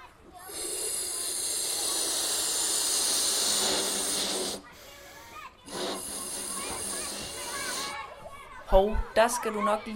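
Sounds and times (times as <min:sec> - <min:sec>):
balloon being inflated: 0:00.5 - 0:08.0
speech: 0:08.7 - 0:09.9.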